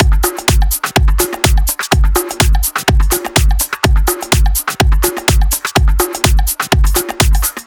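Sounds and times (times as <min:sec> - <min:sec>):
drums: 0:00.0 - 0:07.6.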